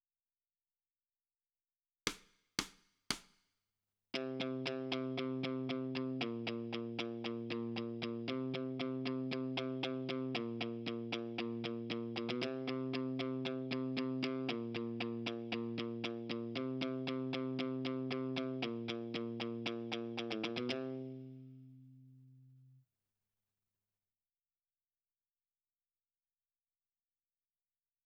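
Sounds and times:
guitar: 0:04.1 - 0:22.8.

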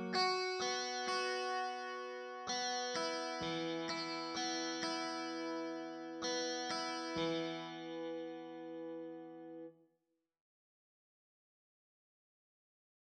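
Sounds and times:
electric guitar: 0:00.0 - 0:09.7.

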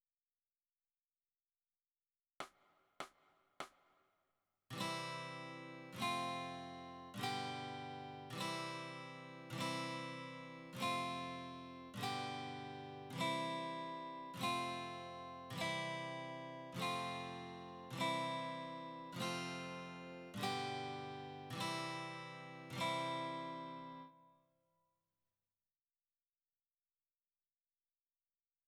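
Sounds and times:
guitar: 0:04.7 - 0:24.4.

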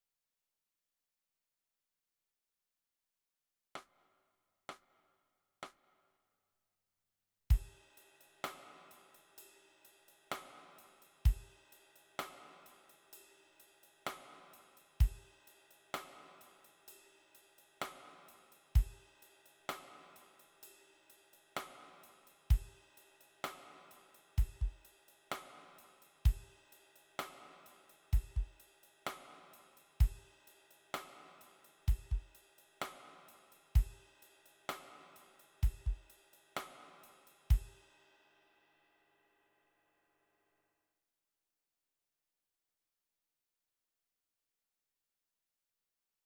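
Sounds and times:
drums: 0:07.5 - 0:38.1.

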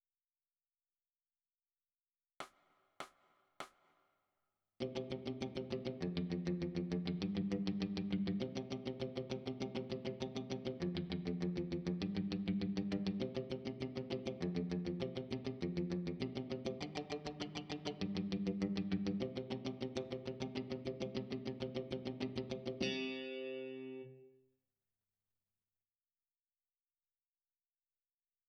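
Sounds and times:
electric guitar: 0:04.8 - 0:24.4.

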